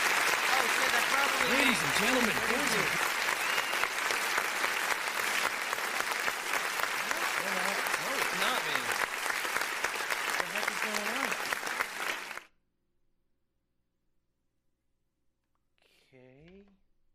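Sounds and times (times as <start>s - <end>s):
round of applause: 0.0s - 12.5s
speech: 1.7s - 3.1s.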